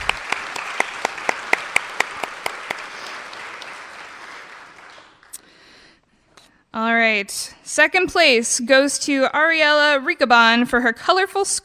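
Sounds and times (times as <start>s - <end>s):
round of applause: 0.0s - 5.6s
speech: 6.8s - 11.6s.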